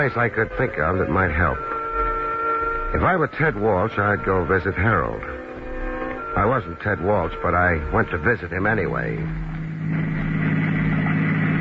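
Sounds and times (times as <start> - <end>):
speech: 0.0 - 1.7, 2.9 - 5.4, 6.3 - 10.1
car engine drone driving at night: 0.0 - 11.5.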